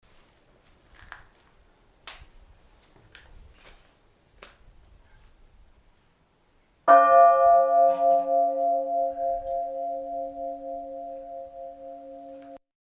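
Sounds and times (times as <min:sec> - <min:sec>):
bell ringing: 0:06.9 - 0:12.6.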